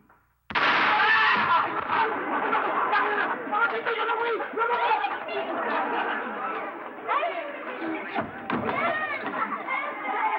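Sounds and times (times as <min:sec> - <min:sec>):
gunshot fired into the air: 0:00.5 - 0:02.2
laughter: 0:01.6 - 0:10.3.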